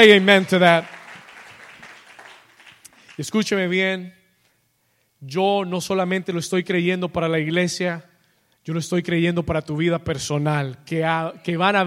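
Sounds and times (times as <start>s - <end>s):
speech: 0.0s - 1.0s, 3.2s - 4.2s, 5.2s - 11.8s
audience applauding: 0.0s - 3.4s.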